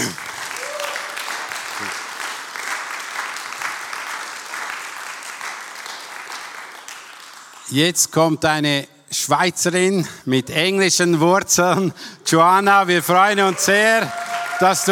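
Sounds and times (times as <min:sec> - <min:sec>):
audience applause: 0:00.0 - 0:07.7, 0:13.4 - 0:14.9
speech: 0:07.7 - 0:14.9.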